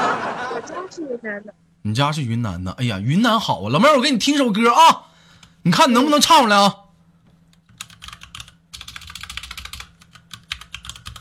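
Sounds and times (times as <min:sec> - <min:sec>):
laughter: 0:00.0 - 0:01.0
faint low hum: 0:00.0 - 0:11.1
speech: 0:00.6 - 0:06.8
typing on a computer keyboard: 0:07.5 - 0:11.1.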